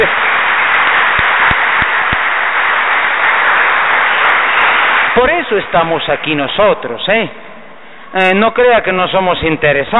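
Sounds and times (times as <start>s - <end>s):
audience applause: 0.0s - 6.0s
speech: 5.2s - 7.5s, 8.1s - 9.9s.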